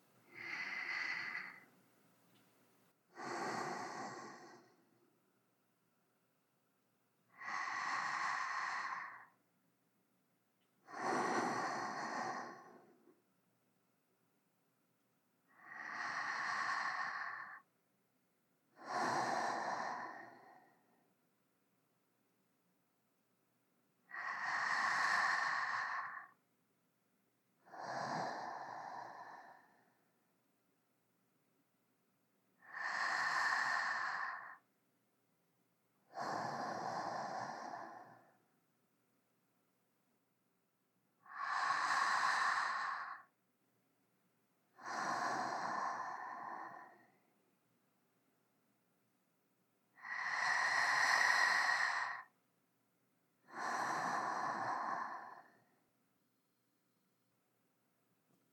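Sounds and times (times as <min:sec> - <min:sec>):
sleeping breath: 0:00.2 - 0:01.8, 0:03.1 - 0:05.1, 0:07.3 - 0:09.4, 0:10.8 - 0:13.2, 0:15.5 - 0:17.7, 0:18.7 - 0:21.1, 0:24.1 - 0:26.4, 0:27.6 - 0:30.2, 0:32.6 - 0:34.7, 0:36.0 - 0:38.5, 0:41.2 - 0:43.4, 0:44.7 - 0:47.3, 0:49.9 - 0:52.4, 0:53.4 - 0:55.8.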